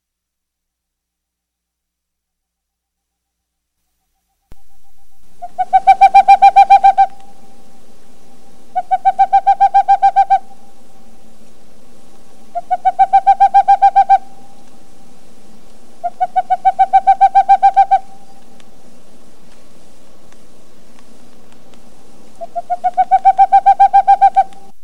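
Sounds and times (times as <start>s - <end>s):
owl hoots in broadcast recording for a northern owl survey: 4.5s - 18.8s, 21.8s - 24.8s.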